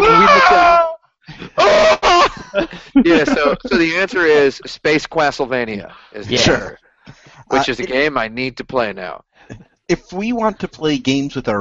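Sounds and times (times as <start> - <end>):
death scream from the video game Impossible Mission 2: 0.0 - 0.9, 1.5 - 2.4
laughter: 0.0 - 9.2, 9.9 - 11.5
speech: 2.6 - 11.5.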